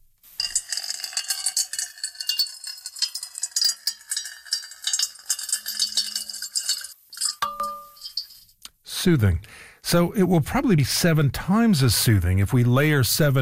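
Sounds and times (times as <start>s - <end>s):
water drips: 0.4s - 8.5s
water pouring into a metal bowl: 0.4s - 8.5s
speech: 9.0s - 13.4s.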